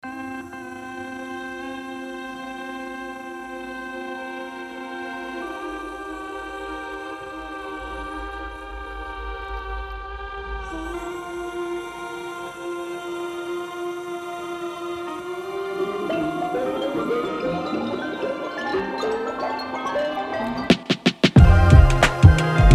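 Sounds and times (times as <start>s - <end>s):
instrumental remix: 15.0s - 22.7s.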